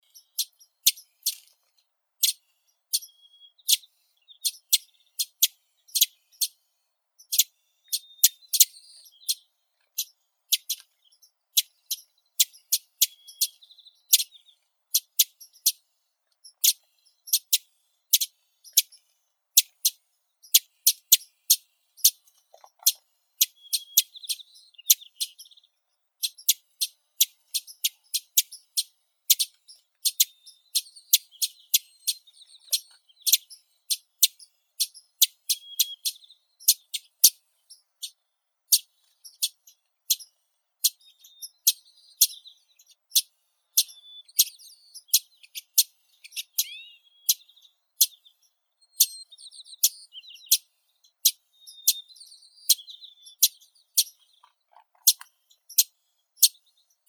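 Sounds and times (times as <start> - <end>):
Wilson's warbler Wilsonia pusilla singing: 0.0 - 6.6, 7.2 - 57.0.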